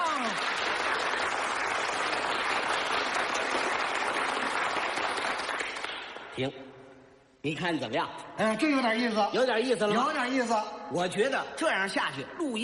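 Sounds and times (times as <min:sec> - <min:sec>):
long applause: 0:00.0 - 0:06.4
speech: 0:06.4 - 0:06.6, 0:07.4 - 0:12.6.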